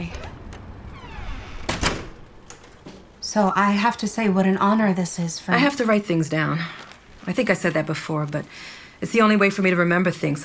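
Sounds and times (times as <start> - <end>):
door and latch banging shut: 0.0 - 2.8
speech: 3.3 - 10.4
rustling movement: 5.5 - 9.4.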